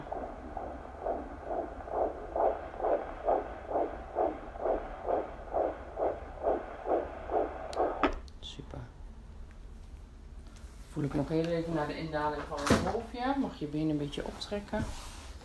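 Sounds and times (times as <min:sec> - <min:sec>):
fetal heartbeat on doppler monitor: 0:00.0 - 0:08.3
faint hum: 0:00.0 - 0:12.5
speech: 0:11.0 - 0:15.1.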